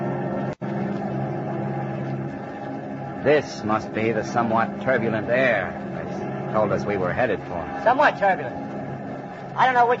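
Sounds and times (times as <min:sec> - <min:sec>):
giant bomber engines roaring through the night: 0:00.0 - 0:09.9
speech: 0:03.2 - 0:08.6, 0:09.6 - 0:09.9.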